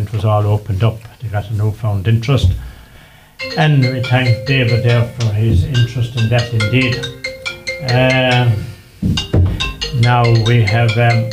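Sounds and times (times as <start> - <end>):
speech: 0.1 - 2.7, 3.4 - 7.2, 7.8 - 11.3
mobile phone ringtone: 3.4 - 11.3.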